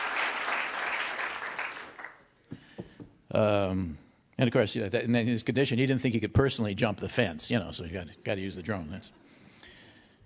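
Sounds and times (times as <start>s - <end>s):
audience applause: 0.0s - 2.2s
speech: 3.4s - 9.2s.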